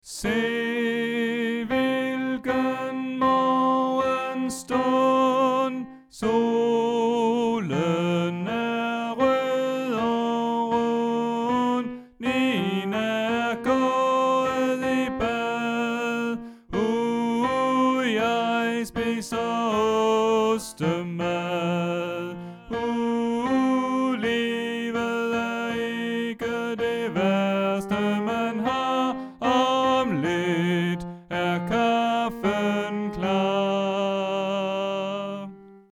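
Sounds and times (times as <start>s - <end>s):
tenor singing: 0.0s - 35.9s.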